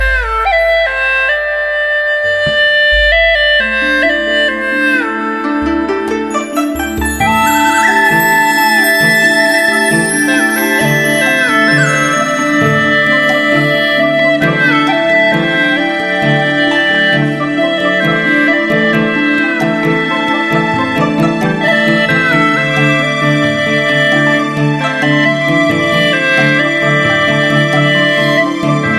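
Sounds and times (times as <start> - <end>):
heart touching melody: 0.0 - 28.9.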